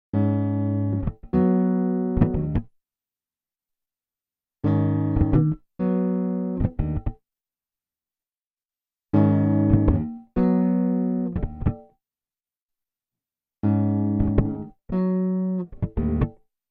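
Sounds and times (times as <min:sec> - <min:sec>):
guitar: 0:00.1 - 0:02.7, 0:04.6 - 0:07.2, 0:09.1 - 0:12.0, 0:13.6 - 0:16.5.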